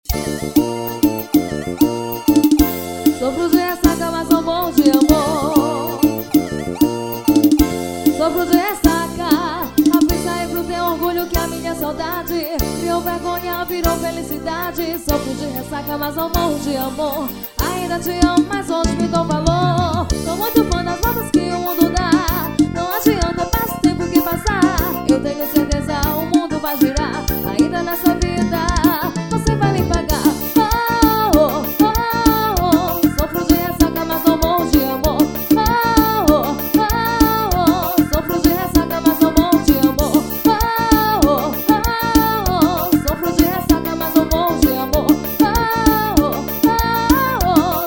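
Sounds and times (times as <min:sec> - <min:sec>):
forró music: 0:00.0 - 0:47.8.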